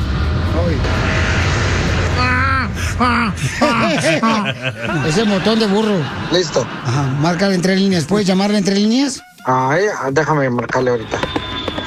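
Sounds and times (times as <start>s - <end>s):
airplane: 0.0s - 3.7s, 11.0s - 11.8s
speech: 0.7s - 1.1s, 3.0s - 11.4s
laughter: 3.0s - 8.4s.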